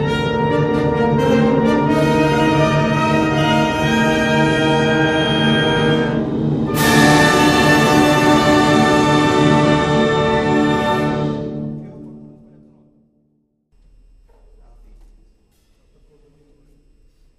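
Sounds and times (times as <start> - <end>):
fugue: 0.0 - 13.0.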